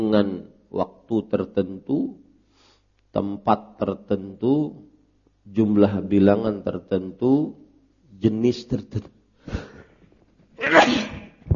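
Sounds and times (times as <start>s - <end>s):
speech: 0.0s - 2.2s, 3.1s - 4.9s, 5.5s - 7.6s, 8.2s - 9.7s
sneeze: 10.6s - 11.4s.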